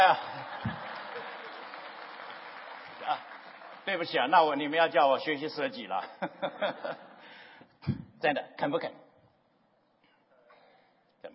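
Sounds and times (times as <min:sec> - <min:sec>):
speech: 0:00.0 - 0:00.6, 0:03.9 - 0:07.1, 0:07.8 - 0:09.0
laughter: 0:00.0 - 0:01.9, 0:06.2 - 0:07.2
audience applause from a room full of people: 0:00.0 - 0:04.5.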